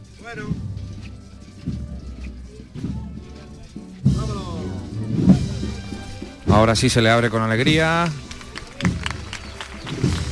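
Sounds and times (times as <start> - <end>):
faint low murmur of voices: 0.0 - 10.3
speech: 0.2 - 0.6, 6.6 - 8.2
crowd applauding a procession float: 7.3 - 10.3.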